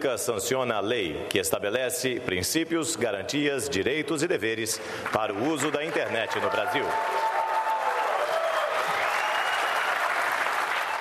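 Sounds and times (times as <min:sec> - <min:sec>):
speech: 0:00.0 - 0:07.3
thunderous applause at signing ceremony: 0:05.0 - 0:10.9.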